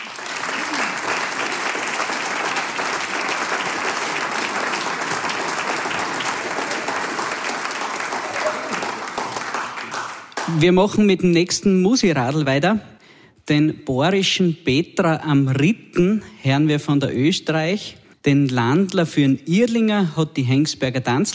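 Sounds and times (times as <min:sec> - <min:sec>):
audience applause: 0:00.0 - 0:10.7
speech: 0:10.5 - 0:12.9, 0:13.5 - 0:21.3.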